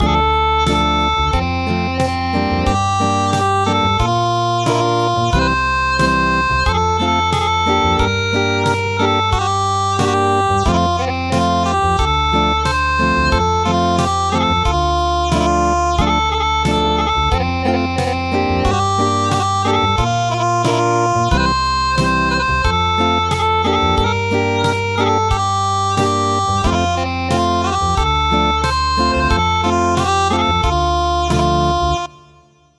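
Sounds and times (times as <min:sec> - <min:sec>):
acoustic music: 0:00.0 - 0:32.7.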